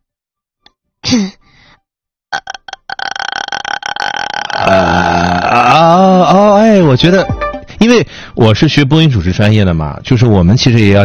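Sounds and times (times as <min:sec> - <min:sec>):
speech: 0:01.1 - 0:01.4, 0:06.9 - 0:11.0
vocal fry demonstration: 0:02.4 - 0:06.3.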